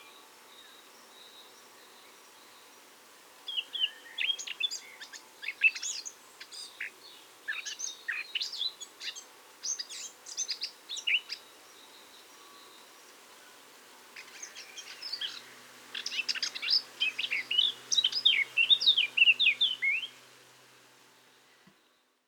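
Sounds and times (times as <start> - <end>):
Eurasian blackcap singing: 3.5 - 11.9, 14.2 - 20.2.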